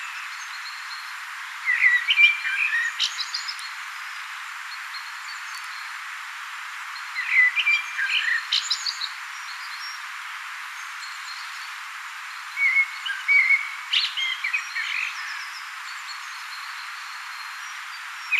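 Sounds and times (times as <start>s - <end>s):
common blackbird singing: 1.7s - 3.7s, 7.2s - 9.1s, 12.6s - 16.2s.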